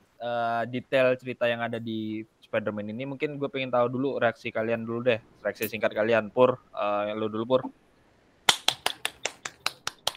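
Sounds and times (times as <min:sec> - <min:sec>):
speech: 0:00.2 - 0:07.8
hand clapping: 0:08.5 - 0:10.1.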